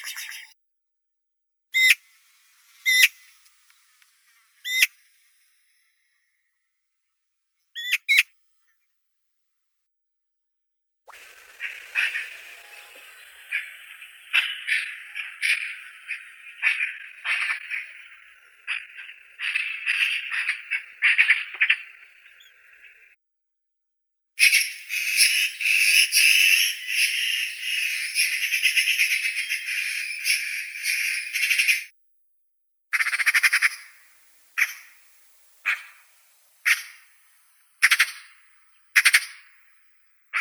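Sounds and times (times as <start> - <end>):
Pica pica magpie: 0.0 - 0.5, 1.8 - 2.0, 2.8 - 3.4, 4.6 - 5.0, 7.8 - 8.3, 11.1 - 23.1, 24.4 - 31.9, 32.9 - 39.6
nature sounds: 0.0 - 0.5, 1.8 - 5.5, 11.1 - 23.1, 24.4 - 31.9, 32.9 - 39.6.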